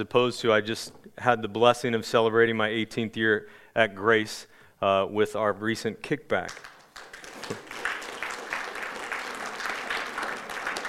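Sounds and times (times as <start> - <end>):
speech: 0.0 - 6.8, 7.5 - 7.8
audience clapping: 6.4 - 10.8.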